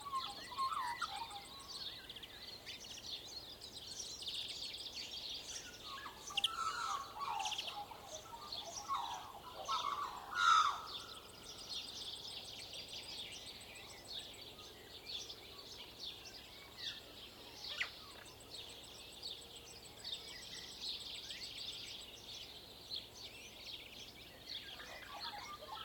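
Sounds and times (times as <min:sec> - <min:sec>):
dawn chorus birds on rural farmland in Waikato New Zealand: 0:00.0 - 0:25.8.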